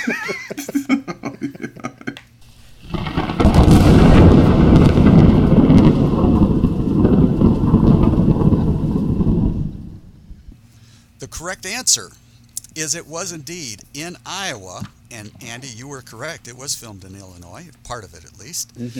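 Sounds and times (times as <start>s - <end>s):
laughter: 0.0s - 2.2s
thunder-and-lightning sound effect crash and rolling rumble: 2.4s - 10.6s
speech: 11.4s - 12.2s, 12.8s - 18.9s.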